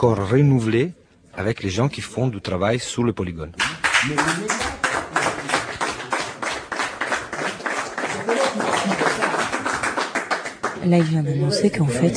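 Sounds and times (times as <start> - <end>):
speech: 0.0 - 4.8, 10.8 - 12.1
shepherds applauding: 3.6 - 11.8.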